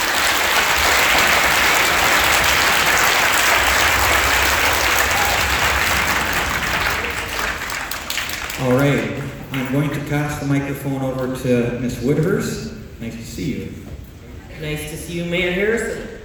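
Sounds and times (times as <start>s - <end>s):
audience applause for students at a public event: 0.0s - 10.4s
speech: 9.7s - 13.9s, 14.6s - 16.1s.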